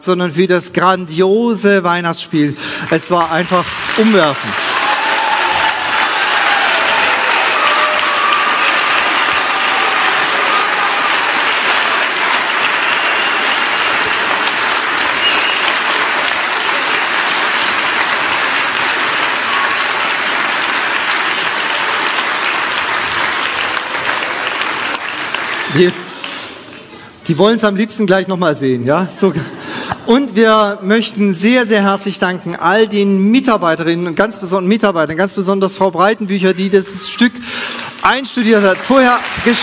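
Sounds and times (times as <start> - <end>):
speech: 0.0 - 4.7, 25.7 - 26.0, 27.3 - 39.6
audience applause: 2.8 - 26.9, 37.2 - 39.6.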